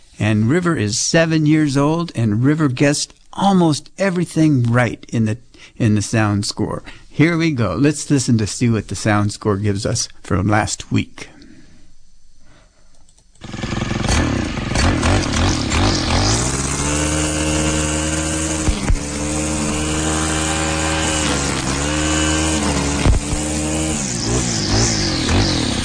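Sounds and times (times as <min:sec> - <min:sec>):
speech: 0:00.2 - 0:11.4
weed eater running: 0:13.4 - 0:25.8.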